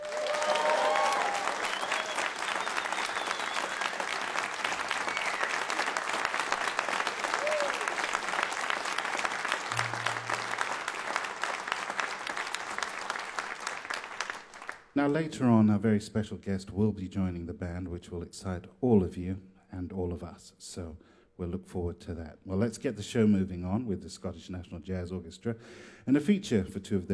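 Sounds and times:
large audience applause: 0.0s - 14.9s
speech: 15.0s - 27.1s.

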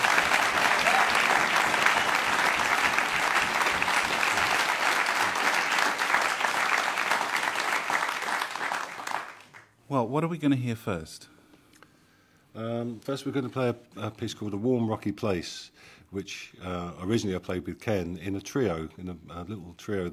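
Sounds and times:
audience applause: 0.0s - 9.6s
speech: 10.0s - 11.4s, 12.6s - 20.1s.

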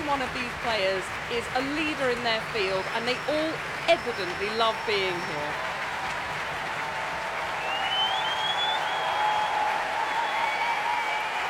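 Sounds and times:
concert hall audience applause: 0.0s - 11.4s
speech: 0.1s - 5.7s
faint high whistle: 7.6s - 11.4s.

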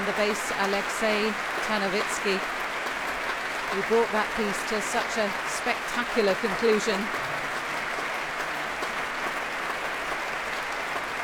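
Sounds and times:
applause from soloists and chorus: 0.0s - 11.2s
speech: 0.2s - 2.6s, 3.7s - 7.3s.

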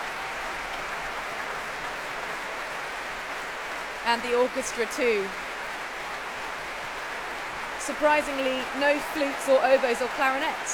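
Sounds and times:
audience cheering and applauding a choir: 0.0s - 10.7s
speech: 4.1s - 5.5s, 7.9s - 10.7s.

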